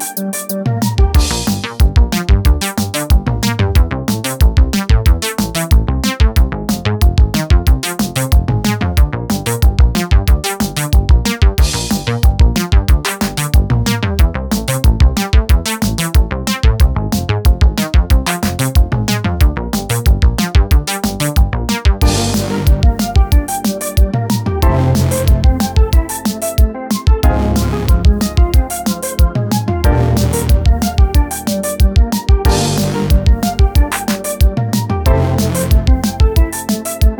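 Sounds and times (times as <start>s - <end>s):
snap bass: 0.4s - 37.1s.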